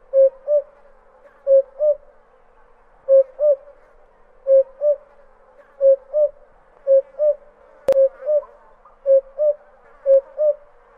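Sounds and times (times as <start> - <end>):
cuckoo call: 0.0 - 0.8, 3.1 - 3.7, 4.5 - 5.1, 5.8 - 10.7.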